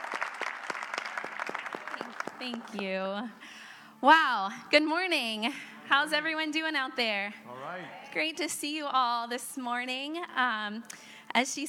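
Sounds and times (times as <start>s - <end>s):
audience clapping: 0.0s - 3.0s
speech: 2.4s - 11.6s.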